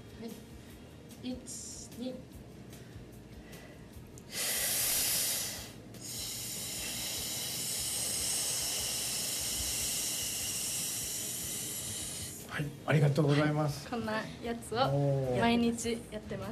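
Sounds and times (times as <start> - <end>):
speech: 1.2 - 2.4, 12.6 - 16.5
deep breath in during a breathing exercise: 2.7 - 12.5
slow thin exhale during a breathing exercise: 3.4 - 12.5.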